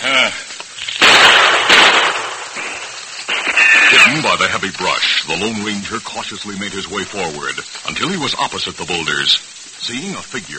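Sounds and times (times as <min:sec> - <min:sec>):
gunshots in a Western radio drama: 0:00.9 - 0:04.5
speech: 0:04.1 - 0:10.5.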